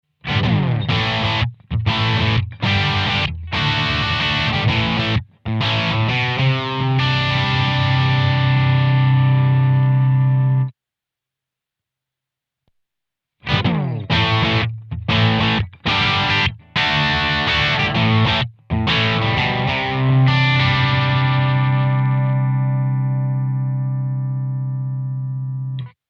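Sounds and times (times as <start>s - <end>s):
AC combo guitar amp: 0.2s - 10.8s, 13.4s - 26.0s.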